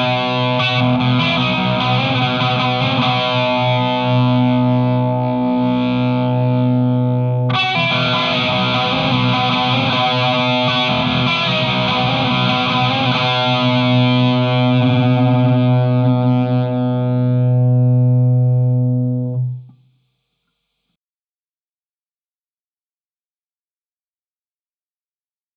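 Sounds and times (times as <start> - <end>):
Walrus Audio Ages guitar effect pedal: 0.0 - 20.0.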